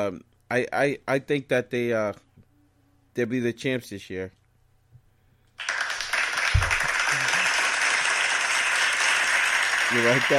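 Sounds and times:
speech: 0.0 - 2.3, 3.2 - 4.4, 9.9 - 10.3
studio audience applause in a standing ovation: 5.6 - 10.3.

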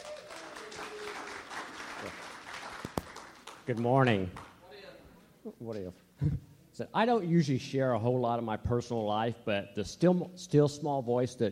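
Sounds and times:
audience applause welcoming a speaker to the stage: 0.0 - 4.5
speech: 3.7 - 4.5, 5.4 - 11.4.

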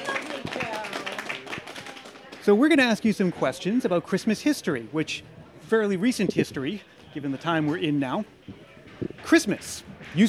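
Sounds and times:
audience applause: 0.0 - 2.6
speech: 2.4 - 8.6, 9.2 - 10.2.

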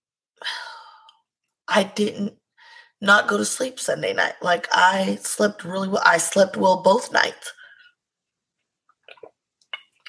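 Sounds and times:
speech: 1.8 - 2.4, 3.0 - 7.6
person sipping water: 8.9 - 10.0.

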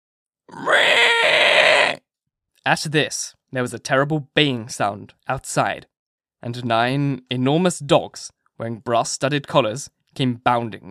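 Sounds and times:
pig's high-pitched whimper: 0.5 - 2.0
speech: 2.6 - 10.8.

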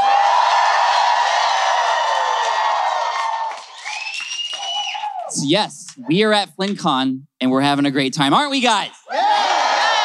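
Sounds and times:
live audience at FlynnCon1 in San Diego cheering and whooping: 0.0 - 6.2, 9.1 - 10.0
speech: 5.4 - 9.0.

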